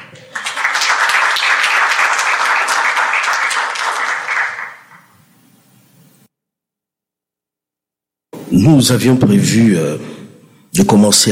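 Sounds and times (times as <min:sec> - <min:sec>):
audience applause: 0:00.0 - 0:05.1
speech: 0:08.6 - 0:10.2, 0:10.8 - 0:11.2.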